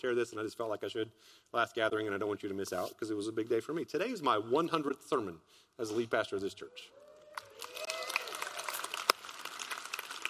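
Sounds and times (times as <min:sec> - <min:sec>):
speech: 0:00.0 - 0:07.9
audience applause: 0:07.2 - 0:10.2.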